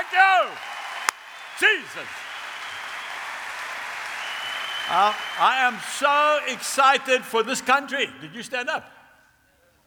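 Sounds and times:
audience applause: 0.0 - 7.7
speech: 1.6 - 2.3, 4.9 - 9.0.

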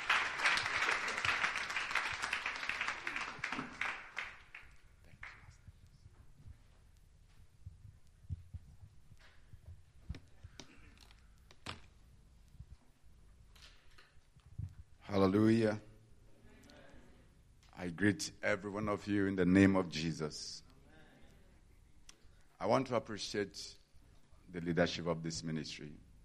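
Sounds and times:
audience applause: 0.0 - 5.4
speech: 15.2 - 15.9, 18.0 - 20.6, 22.7 - 23.8, 24.5 - 26.0.

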